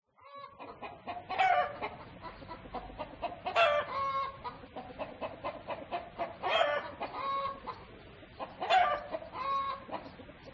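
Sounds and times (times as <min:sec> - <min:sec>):
rooster squawking: 0:01.3 - 0:01.9, 0:03.5 - 0:04.4, 0:06.2 - 0:07.7, 0:08.6 - 0:10.0.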